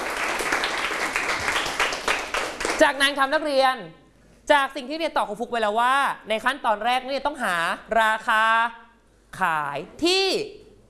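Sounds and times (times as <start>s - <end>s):
students clapping for a classmate in a classroom: 0.0s - 2.8s
speech: 2.8s - 10.6s.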